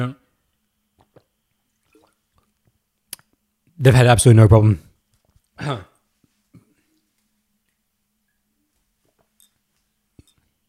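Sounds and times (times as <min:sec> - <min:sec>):
speech: 0:00.0 - 0:00.2, 0:03.8 - 0:04.8, 0:05.6 - 0:05.9
person coughing after swallowing water wrong: 0:05.6 - 0:06.0.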